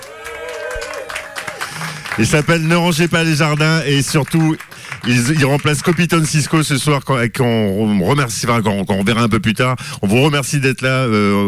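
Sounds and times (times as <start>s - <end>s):
audience applause: 0.0s - 6.7s
speech: 2.2s - 11.4s.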